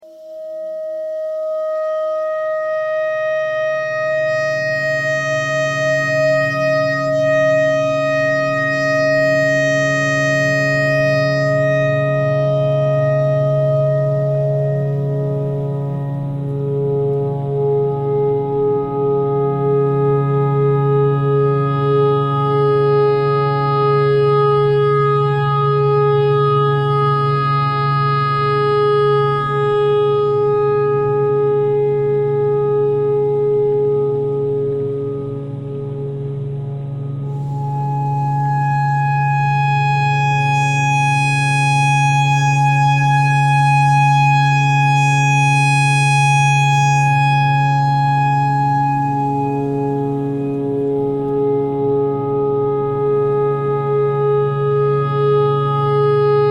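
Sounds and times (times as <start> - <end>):
clarinet notes imitating a tornado siren: 0.0 - 36.3, 36.9 - 56.4.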